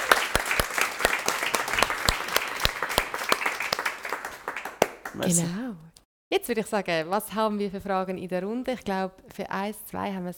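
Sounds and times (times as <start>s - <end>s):
short round of applause: 0.0s - 5.6s
speech: 5.2s - 10.3s.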